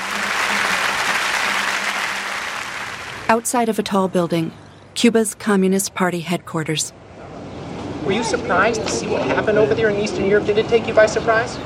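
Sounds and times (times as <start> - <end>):
crowd applauding at a Cuban political gathering in 1992: 0.0 - 3.5
speech: 3.3 - 7.1, 8.0 - 11.6.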